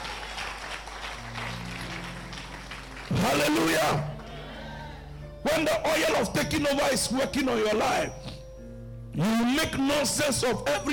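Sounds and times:
audience clapping: 0:00.0 - 0:04.4
speech: 0:05.5 - 0:08.2, 0:09.2 - 0:10.9.

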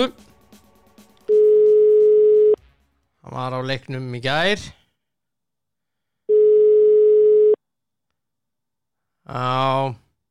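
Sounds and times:
speech: 0:00.0 - 0:00.3, 0:03.3 - 0:04.8, 0:09.3 - 0:10.0
telephone ringback tone: 0:01.3 - 0:02.6, 0:06.3 - 0:07.6.

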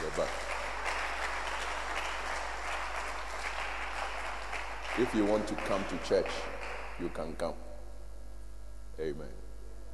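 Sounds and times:
crowd clapping: 0:00.0 - 0:07.3
speech: 0:00.1 - 0:00.6, 0:05.0 - 0:07.7, 0:09.0 - 0:09.4.

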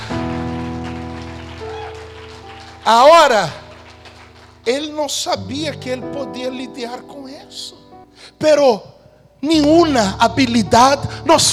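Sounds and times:
audience applause: 0:00.0 - 0:04.7
speech: 0:02.8 - 0:03.6, 0:04.7 - 0:07.8, 0:08.4 - 0:11.5.

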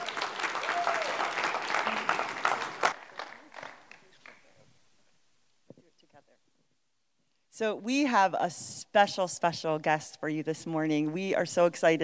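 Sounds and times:
church audience clapping and cheering: 0:00.0 - 0:04.5
speech: 0:07.6 - 0:12.0.

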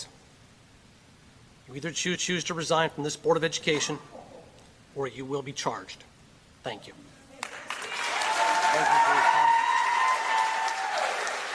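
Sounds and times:
speech: 0:01.7 - 0:04.2, 0:05.0 - 0:07.1
thunderous crowd applause: 0:07.4 - 0:11.5.

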